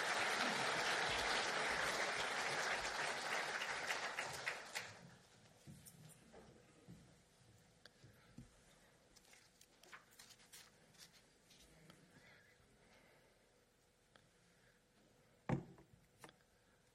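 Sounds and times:
crowd warm applause: 0:00.0 - 0:05.2.

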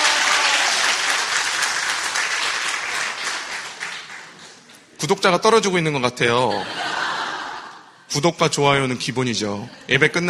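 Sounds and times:
audience applauding: 0:00.0 - 0:04.6
speech: 0:05.0 - 0:06.9, 0:08.1 - 0:10.2
laughter: 0:06.3 - 0:08.0.

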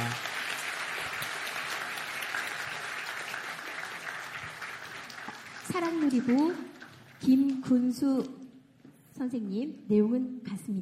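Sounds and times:
audience applause: 0:00.0 - 0:07.3
speech: 0:05.7 - 0:08.4, 0:09.2 - 0:10.8.

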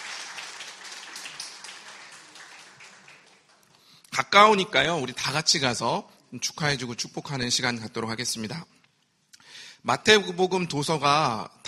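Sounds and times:
audience applauding in congratulation: 0:00.0 - 0:03.8
speech: 0:04.2 - 0:08.8, 0:09.8 - 0:11.6.

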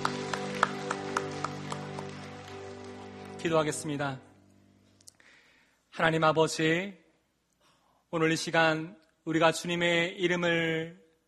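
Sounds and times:
audience clapping in rhythm: 0:00.0 - 0:04.0
speech: 0:03.4 - 0:04.3, 0:06.0 - 0:07.0, 0:08.1 - 0:11.0.

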